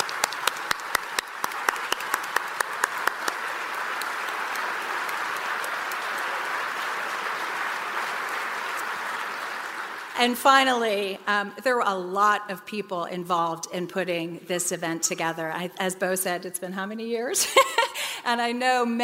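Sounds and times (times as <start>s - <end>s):
audience applause: 0.0s - 10.6s
speech: 10.2s - 19.0s
laughter: 17.4s - 18.1s.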